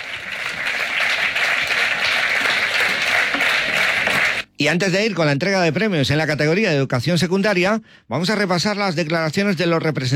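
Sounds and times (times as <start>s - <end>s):
applause for a school choir: 0.0s - 4.5s
speech: 4.6s - 10.1s.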